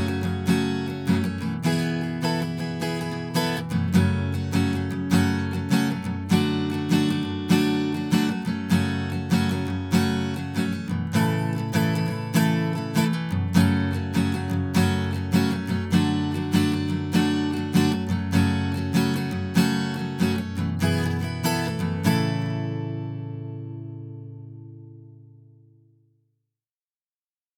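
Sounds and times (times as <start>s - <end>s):
guitar recorded with a condenser microphone: 0.0s - 26.1s.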